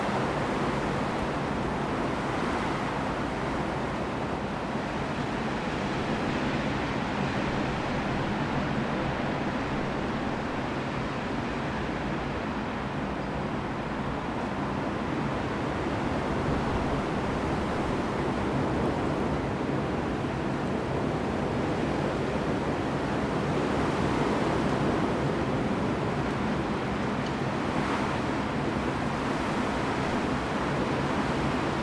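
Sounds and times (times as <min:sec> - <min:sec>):
gale wind: 0:00.0 - 0:31.8.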